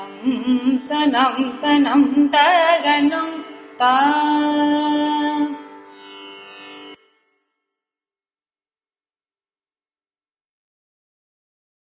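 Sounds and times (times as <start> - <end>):
thanam in carnatic music: 0.0 - 7.7.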